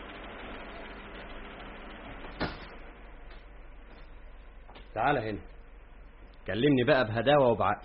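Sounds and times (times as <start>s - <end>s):
door closing thud: 2.2s - 2.8s
speech: 5.0s - 5.6s, 6.4s - 7.8s.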